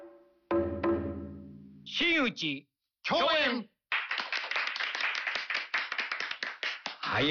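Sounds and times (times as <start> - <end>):
speech: 1.9 - 3.7
modest audience applause: 3.9 - 7.3.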